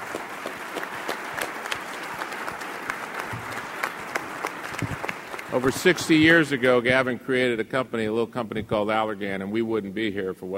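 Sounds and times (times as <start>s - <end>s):
audience applause: 0.0s - 6.8s
speech: 5.6s - 10.5s.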